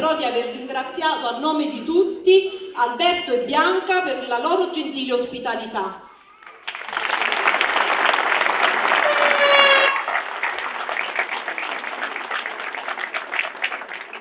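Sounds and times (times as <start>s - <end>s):
speech: 0.0s - 6.1s
audience applause: 6.4s - 14.2s.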